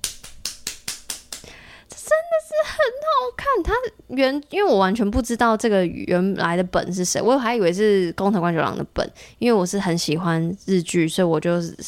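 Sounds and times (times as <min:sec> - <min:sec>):
hand clapping: 0:00.0 - 0:01.6
speech: 0:01.4 - 0:11.8.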